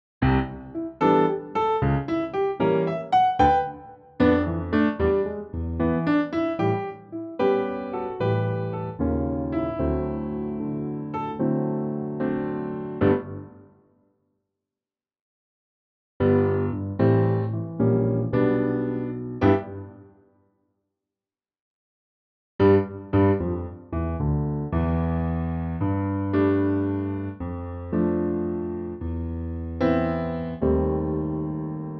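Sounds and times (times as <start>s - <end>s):
piano: 0.2s - 14.0s, 16.2s - 20.4s, 22.6s - 31.9s.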